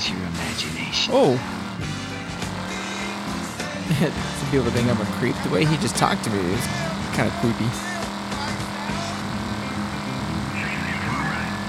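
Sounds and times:
car engine driven in a video game similar to GTA: 0:00.0 - 0:11.6
speech: 0:00.6 - 0:01.9, 0:03.9 - 0:07.9
other video game sounds: 0:00.6 - 0:11.6
laughter: 0:03.8 - 0:04.4.

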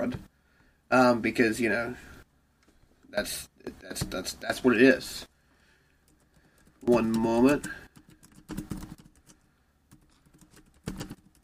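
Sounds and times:
speech: 0:00.0 - 0:00.3, 0:00.9 - 0:02.1, 0:03.1 - 0:05.3, 0:06.8 - 0:07.8
typing on a computer keyboard: 0:06.0 - 0:11.4.

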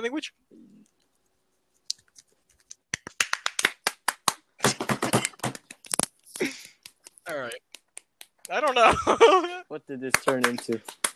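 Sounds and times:
speech: 0:00.0 - 0:00.6, 0:07.3 - 0:07.7, 0:08.5 - 0:11.1
hand clapping: 0:02.6 - 0:09.0, 0:10.1 - 0:11.1
laughter: 0:08.6 - 0:10.8.

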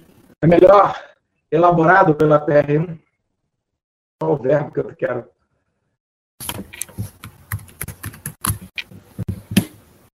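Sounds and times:
speech: 0:00.4 - 0:03.0, 0:04.2 - 0:05.3, 0:06.4 - 0:06.8
computer keyboard keys clicking, including the enter key: 0:06.4 - 0:08.9.

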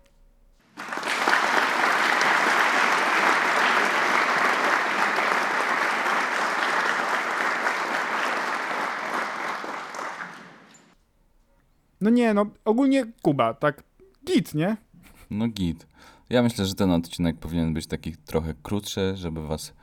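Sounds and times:
applause sound effect: 0:00.7 - 0:11.0
speech: 0:12.0 - 0:19.8.

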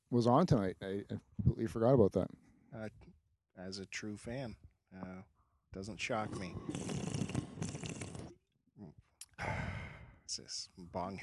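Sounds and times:
speech: 0:00.1 - 0:07.0, 0:10.3 - 0:11.2
sipping from a can of Red Bull: 0:06.2 - 0:08.4.

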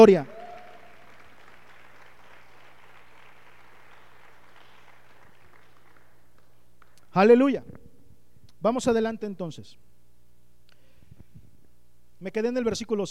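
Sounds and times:
speech: 0:00.0 - 0:00.4, 0:07.2 - 0:07.8, 0:08.6 - 0:09.9, 0:12.2 - 0:13.1
audience applause: 0:00.0 - 0:07.0.

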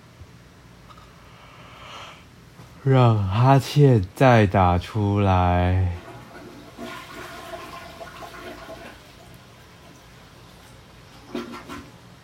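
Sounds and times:
speech: 0:02.8 - 0:06.0
toilet flushing: 0:05.8 - 0:12.2.

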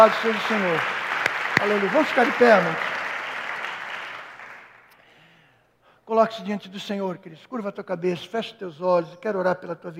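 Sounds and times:
speech: 0:00.0 - 0:01.0, 0:01.6 - 0:02.9, 0:06.1 - 0:09.9
audience applauding: 0:00.0 - 0:04.9.

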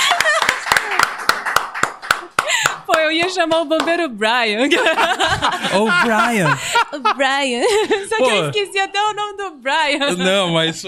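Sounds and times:
laughter: 0:00.0 - 0:01.1, 0:04.7 - 0:08.6, 0:10.0 - 0:10.8
hands clapping: 0:00.0 - 0:04.0
speech: 0:03.1 - 0:10.8.

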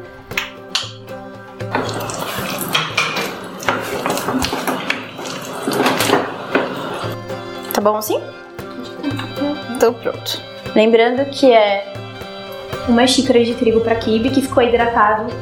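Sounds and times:
soft music: 0:00.0 - 0:15.4
potatoes being mashed with a potato masher: 0:01.7 - 0:07.1
speech: 0:07.8 - 0:08.4, 0:09.8 - 0:11.9, 0:12.8 - 0:15.4.

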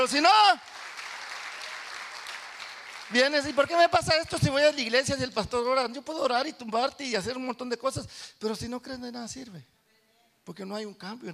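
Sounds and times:
speech: 0:00.0 - 0:00.8, 0:03.1 - 0:09.7, 0:10.4 - 0:11.3
audience applause: 0:00.0 - 0:04.0.

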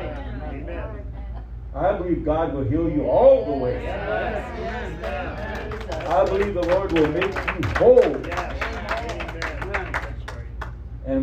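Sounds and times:
speech: 0:01.8 - 0:08.6
audience clapping hands: 0:04.7 - 0:10.8.

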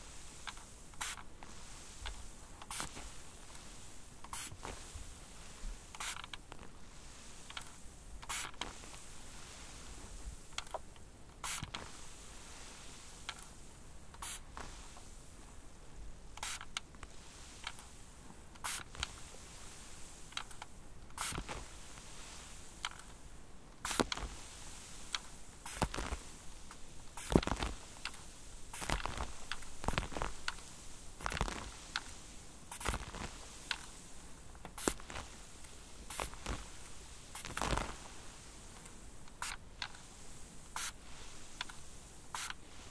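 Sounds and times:
water drops and sprinklers spraying: 0:00.0 - 0:15.2, 0:16.3 - 0:18.0, 0:18.6 - 0:23.2, 0:23.8 - 0:42.8.

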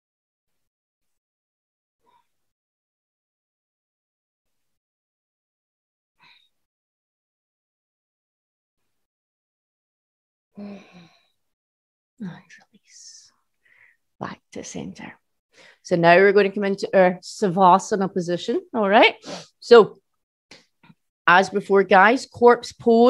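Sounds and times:
speech: 0:10.6 - 0:11.1, 0:12.2 - 0:13.2, 0:14.2 - 0:20.0, 0:21.3 - 0:23.0
breathing in and out through nose: 0:19.2 - 0:19.6.

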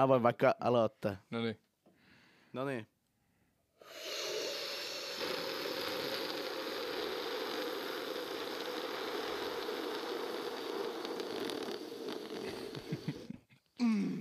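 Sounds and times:
speech: 0:00.0 - 0:01.6, 0:02.5 - 0:02.9, 0:03.8 - 0:04.3, 0:13.8 - 0:14.1
slurping a drink: 0:03.8 - 0:13.3.

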